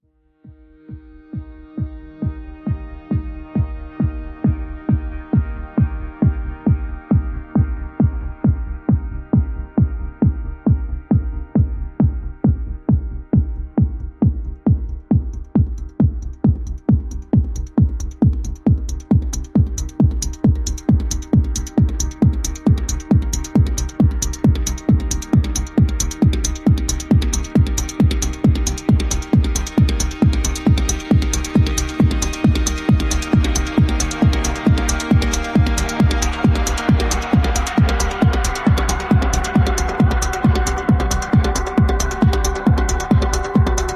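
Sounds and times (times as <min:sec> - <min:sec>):
techno music: 0:00.5 - 0:43.9.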